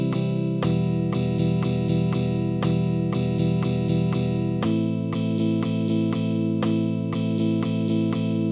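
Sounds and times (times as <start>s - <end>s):
arpeggios on guitar: 0.0s - 8.5s.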